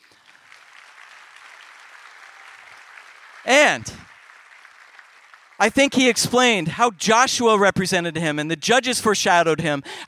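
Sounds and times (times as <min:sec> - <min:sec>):
audience clapping: 0:00.0 - 0:07.8
speech: 0:03.4 - 0:04.0, 0:05.6 - 0:10.0.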